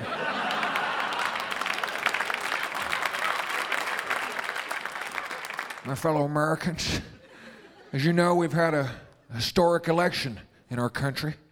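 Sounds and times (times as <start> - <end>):
laughter: 0.0 - 5.8, 7.0 - 8.9
audience applause: 0.0 - 6.1
speech: 5.9 - 7.2, 7.9 - 11.4.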